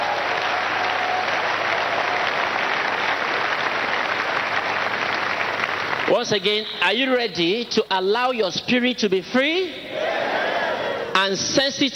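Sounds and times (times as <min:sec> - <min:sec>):
audience applause: 0:00.0 - 0:06.4
speech: 0:06.1 - 0:09.9, 0:11.2 - 0:11.9.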